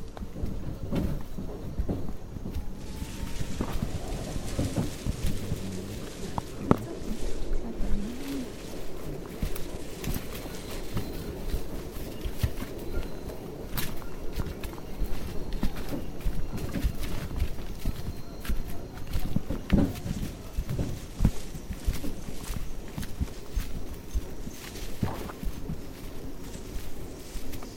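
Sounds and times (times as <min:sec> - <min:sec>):
footsteps on leaves and twigs in the Tambopata rainforest: 0:00.0 - 0:27.7
low rustling and rumbling during a rainforest hike: 0:00.0 - 0:27.7
animal calls in the Tambopata rainforest in Peru: 0:02.7 - 0:14.3.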